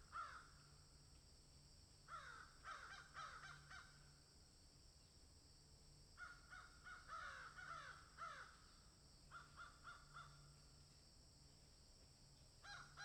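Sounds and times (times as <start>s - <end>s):
several crows cawing in a field: 0.1s - 0.5s, 2.1s - 4.0s, 6.2s - 8.7s, 9.3s - 10.5s, 12.6s - 13.0s.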